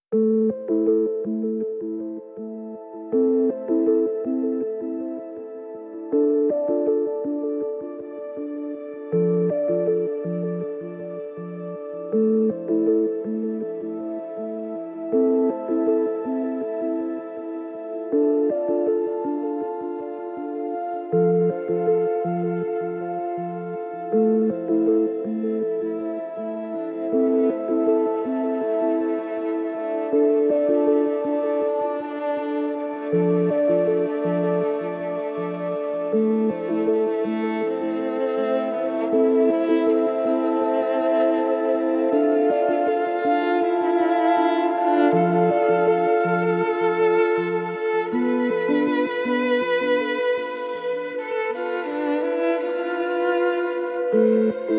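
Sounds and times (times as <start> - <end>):
restful ambient music: 0.0 - 54.7.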